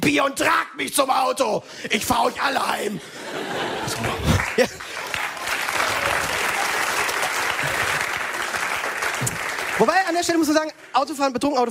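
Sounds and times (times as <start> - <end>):
speech: 0.0 - 5.0, 9.8 - 11.6
laughter and cheering: 2.2 - 8.9
audience applause: 3.4 - 11.0.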